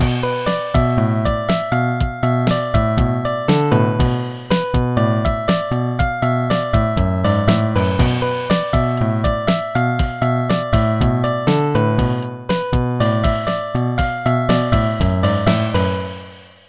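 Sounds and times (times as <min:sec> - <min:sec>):
music beat: 0:00.0 - 0:16.6.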